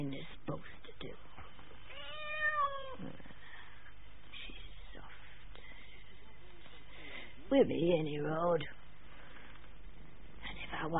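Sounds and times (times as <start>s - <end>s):
cat meowing: 1.9s - 3.0s
speech: 7.6s - 8.8s.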